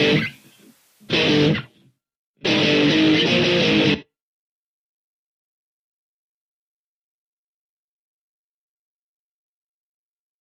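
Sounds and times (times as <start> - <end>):
guitar riff: 0.0 - 4.1.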